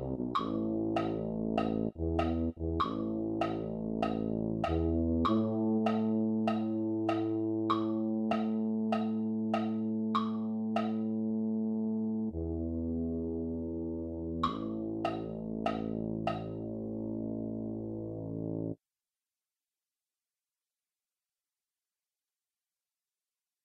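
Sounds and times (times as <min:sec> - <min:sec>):
MIDI tuba: 0:00.0 - 0:18.8.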